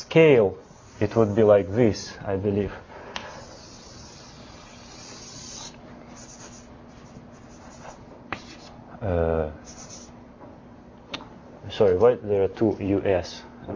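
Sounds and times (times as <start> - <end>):
speech: 0.1 - 2.9, 9.0 - 9.6, 11.7 - 13.7
writing on a board while a graph is plotted: 3.4 - 8.7, 9.7 - 10.1.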